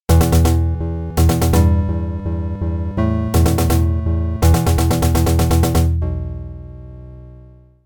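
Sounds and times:
mission completed jingle: 0.1s - 6.0s.

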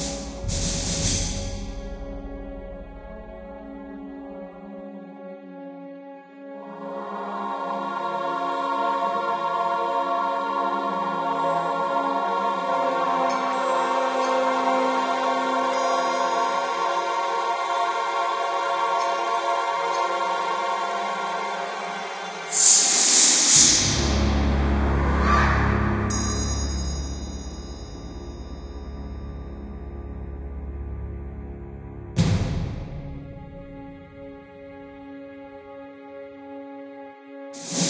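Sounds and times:
ambience: 0.0s - 4.0s, 7.1s - 32.2s.

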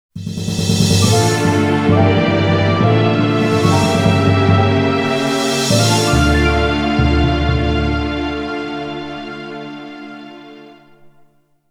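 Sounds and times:
defeat jingle: 0.5s - 9.6s.

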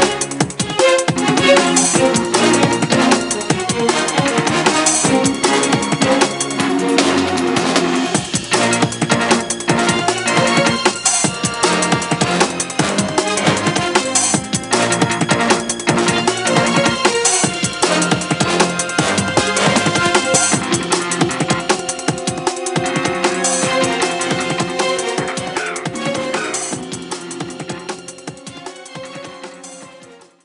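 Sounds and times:
boss battle background music: 0.0s - 30.0s.

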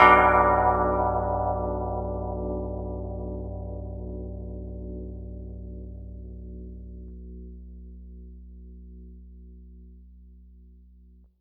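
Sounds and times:
bell: 0.0s - 3.3s.

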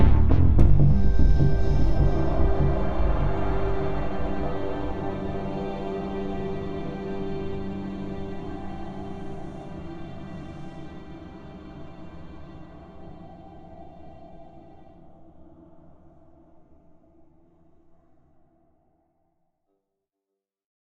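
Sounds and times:
stealth music loop: 0.0s - 13.5s.

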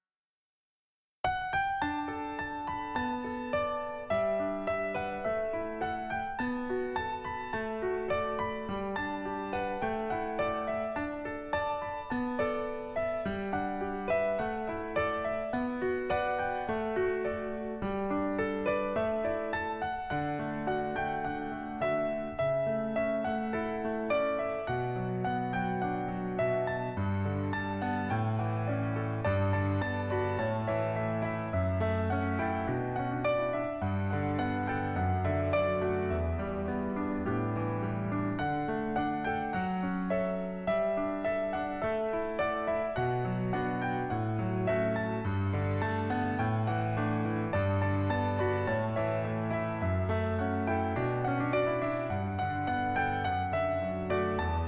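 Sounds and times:
mobile game piano notes: 1.2s - 54.6s.

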